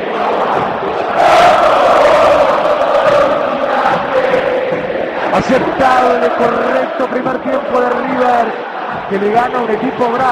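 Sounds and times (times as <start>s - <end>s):
football crowd roaring at River Plate's Monumental stadium: 0.0s - 10.2s
speech: 5.4s - 10.2s.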